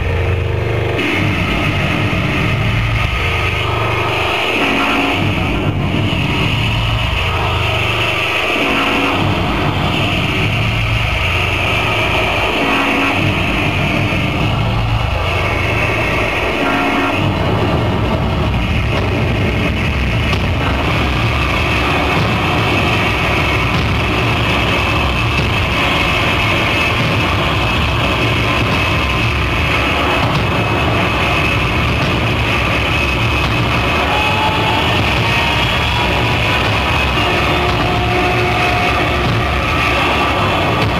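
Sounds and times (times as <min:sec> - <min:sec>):
experimental industrial noise: 0:00.0 - 0:40.9.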